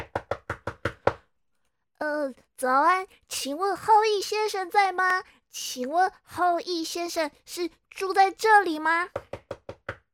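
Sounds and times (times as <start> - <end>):
knocking on a door: 0.0 - 1.2, 9.1 - 10.0
speech: 2.0 - 9.2.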